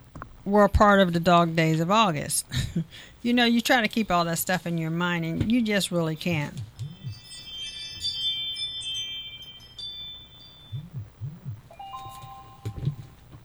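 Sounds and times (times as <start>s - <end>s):
low rumbling hum: 0.0s - 13.4s
speech: 0.5s - 6.7s
mobile phone ringing: 6.8s - 13.3s.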